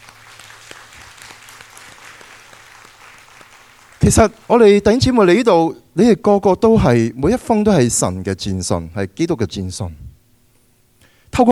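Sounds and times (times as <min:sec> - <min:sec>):
audience applause: 0:00.0 - 0:04.8
speech: 0:04.1 - 0:10.1, 0:11.4 - 0:11.5.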